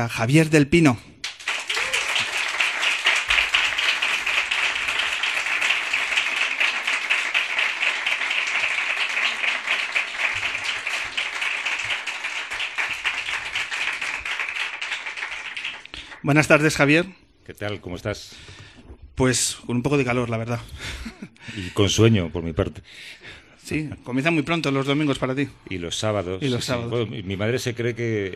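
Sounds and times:
speech: 0.0s - 1.1s, 16.2s - 18.5s, 19.2s - 28.3s
audience applause welcoming a guest: 1.2s - 16.5s.

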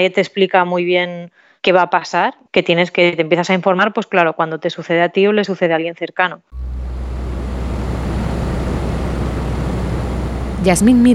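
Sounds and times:
speech: 0.0s - 6.8s, 10.6s - 11.1s
office air conditioner running: 6.5s - 11.1s.

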